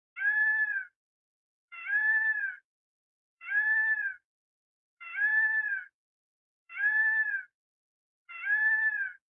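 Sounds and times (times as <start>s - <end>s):
bird: 0.2s - 1.0s, 1.7s - 2.7s, 3.4s - 4.2s, 5.0s - 6.0s, 6.7s - 7.6s, 8.2s - 9.2s.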